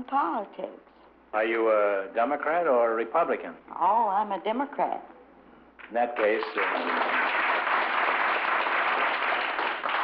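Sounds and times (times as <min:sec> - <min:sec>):
speech: 0:00.0 - 0:05.2, 0:05.9 - 0:07.1
crowd applauding: 0:06.2 - 0:10.0.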